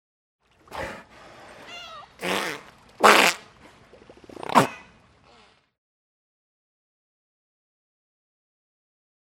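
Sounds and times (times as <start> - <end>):
Pacific pilot whale spitting: 0.6 - 5.7.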